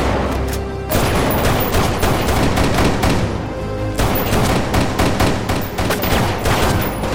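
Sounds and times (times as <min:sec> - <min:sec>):
gunfire volleys in a film shootout beside a car: 0:00.9 - 0:03.4, 0:04.0 - 0:07.1.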